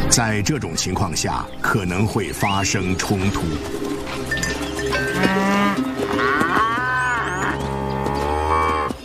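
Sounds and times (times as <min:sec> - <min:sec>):
speech: 0:00.1 - 0:04.4, 0:05.2 - 0:06.5
herd of cattle mooing: 0:04.9 - 0:09.0.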